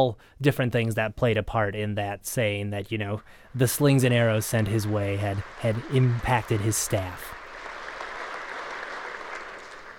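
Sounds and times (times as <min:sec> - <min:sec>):
speech: 0:00.0 - 0:07.4
audience applause: 0:03.5 - 0:09.9.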